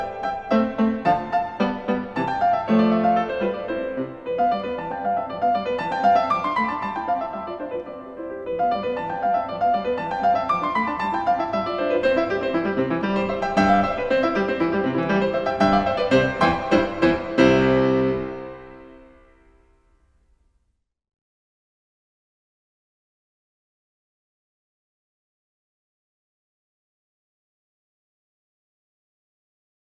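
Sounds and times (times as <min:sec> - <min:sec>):
piano sonata in C: 0:00.0 - 0:20.4.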